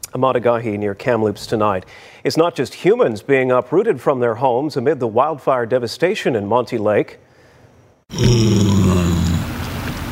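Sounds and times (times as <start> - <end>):
speech: 0.1 - 7.3, 8.1 - 8.8
pot-bellied pig grunting: 8.1 - 9.5.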